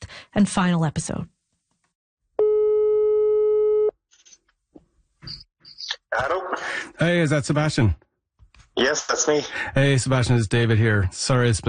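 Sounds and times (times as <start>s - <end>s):
speech: 0.4s - 1.4s, 6.1s - 8.0s, 8.8s - 11.6s
telephone ringing tone during outgoing call: 2.4s - 3.9s.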